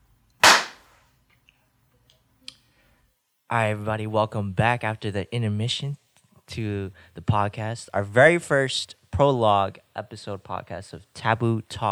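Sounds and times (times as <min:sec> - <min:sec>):
single hand clap marking a recording take: 0:00.4 - 0:00.9
speech: 0:03.5 - 0:11.9.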